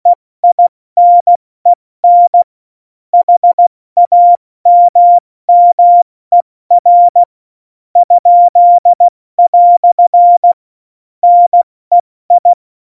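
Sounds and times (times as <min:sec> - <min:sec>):
CW Morse code beeps: 0:00.4 - 0:01.4, 0:02.0 - 0:02.5, 0:03.2 - 0:07.3, 0:08.0 - 0:10.6, 0:11.2 - 0:12.8.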